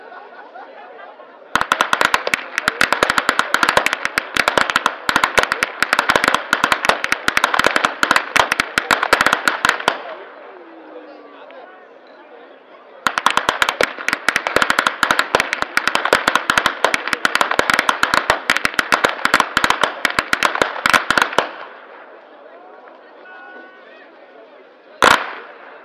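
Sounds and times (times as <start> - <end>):
laughter: 0.0 - 3.8
whip cracking in Flachgau: 1.6 - 10.1, 13.1 - 21.7, 25.0 - 25.8.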